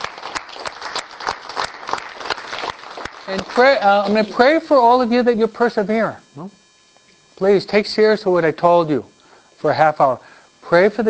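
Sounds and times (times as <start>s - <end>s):
audience applause: 0.0s - 3.9s
speech: 3.3s - 6.6s, 7.4s - 11.0s.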